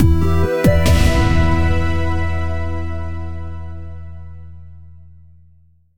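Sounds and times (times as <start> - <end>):
victory stinger: 0.7 - 4.2.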